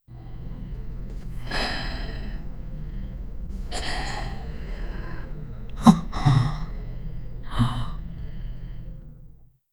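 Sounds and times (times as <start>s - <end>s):
people panting: 0.1s - 9.4s.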